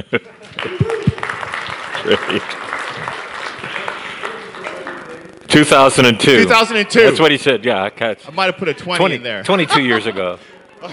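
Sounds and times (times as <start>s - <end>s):
speech: 0.0s - 0.8s, 2.0s - 2.6s, 5.5s - 10.9s
laughter: 0.0s - 5.1s, 9.0s - 10.9s
audience applause welcoming a speaker to the stage at a Campbellford gathering: 0.5s - 5.4s.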